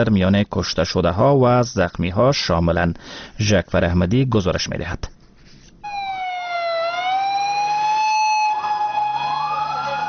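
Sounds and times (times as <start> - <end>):
speech: 0.0 - 5.2
ambulance siren wailing: 5.8 - 10.0.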